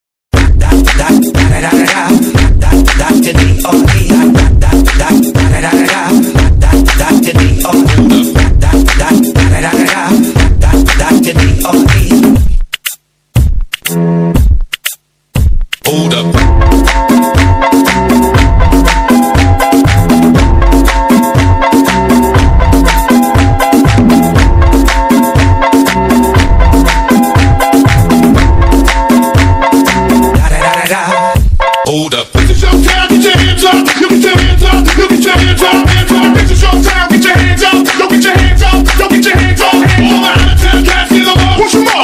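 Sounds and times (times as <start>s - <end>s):
Azeri bass music remix: 0.3s - 42.0s.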